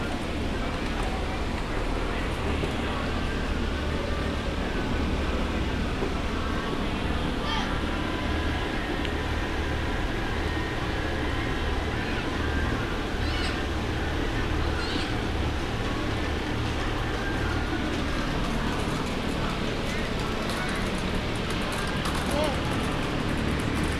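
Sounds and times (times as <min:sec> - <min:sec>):
crowd chatter at Animal Kingdom: 0:00.0 - 0:23.9.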